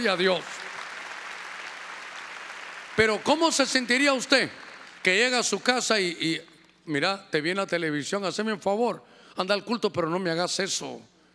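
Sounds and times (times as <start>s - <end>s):
speech: 0.0s - 0.5s, 3.0s - 11.1s
audience clapping: 0.0s - 5.4s.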